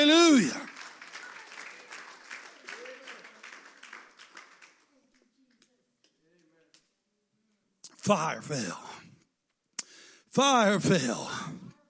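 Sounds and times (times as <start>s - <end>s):
audience clapping hands: 0.0s - 5.8s
speech: 8.1s - 9.0s, 10.4s - 11.6s.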